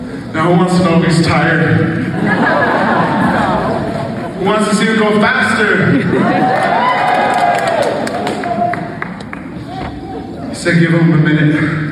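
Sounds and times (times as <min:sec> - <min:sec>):
speech: 0:00.3 - 0:02.7, 0:04.4 - 0:06.7, 0:10.6 - 0:11.8
laughter: 0:01.8 - 0:07.0
crowd cheering and applauding: 0:06.1 - 0:10.3
shouts and whoops: 0:06.2 - 0:09.0.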